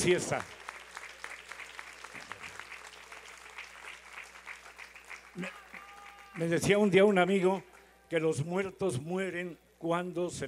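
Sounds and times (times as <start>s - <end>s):
speech: 0.0s - 0.6s, 6.4s - 10.4s
audience applause: 0.0s - 6.9s.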